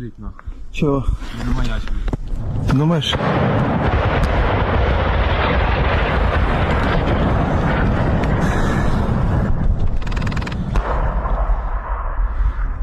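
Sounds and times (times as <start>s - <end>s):
speech: 0.8s - 1.9s, 2.8s - 4.0s
heavy gunfire: 3.0s - 12.7s.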